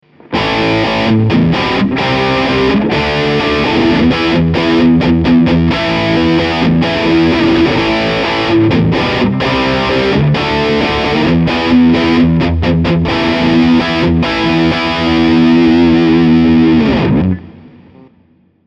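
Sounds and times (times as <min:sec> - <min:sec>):
electric guitar through Engl Fireball 25 lead channel with bridge pickup: 0:00.0 - 0:18.6.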